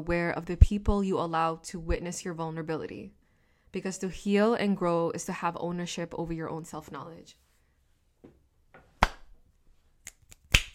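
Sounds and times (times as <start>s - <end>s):
speech: 0.0s - 7.4s
slow hand clap: 9.0s - 9.3s, 10.1s - 10.7s.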